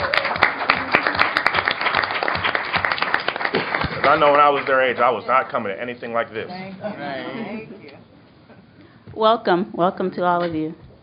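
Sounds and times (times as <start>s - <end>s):
audience applause: 0.0s - 5.2s
speech: 4.1s - 7.8s, 9.2s - 10.8s.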